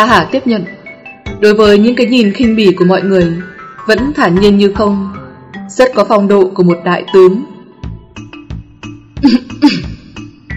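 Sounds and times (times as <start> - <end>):
speech: 0.0 - 0.8, 1.4 - 7.5, 9.2 - 9.9
several people coughing dryly: 9.2 - 10.0.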